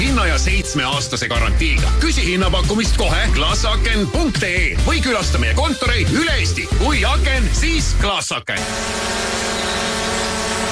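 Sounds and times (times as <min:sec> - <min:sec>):
speech: 0:00.4 - 0:09.9
drone propellers buzzing: 0:08.6 - 0:10.7.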